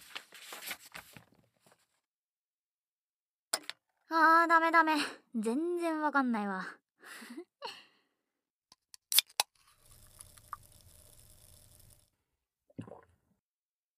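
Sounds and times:
speech: 0:04.1 - 0:07.8
fizzing carbonated drink: 0:09.7 - 0:12.0.

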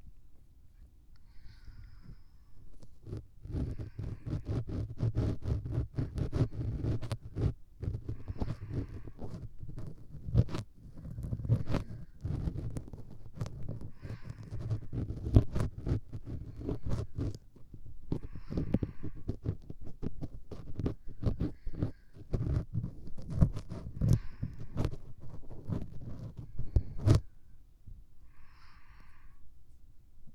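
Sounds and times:
left ear cleaning with long bonten earpick: 0:03.0 - 0:17.4, 0:18.1 - 0:27.2.

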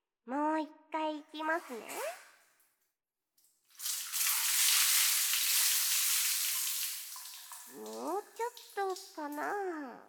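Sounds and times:
speech: 0:00.2 - 0:02.2, 0:07.8 - 0:10.0
water poured to rinse off foam: 0:03.7 - 0:09.6.

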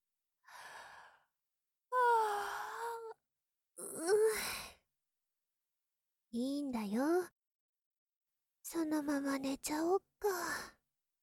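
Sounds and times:
yawn: 0:02.0 - 0:03.2
speech: 0:06.3 - 0:07.3, 0:08.7 - 0:10.8.

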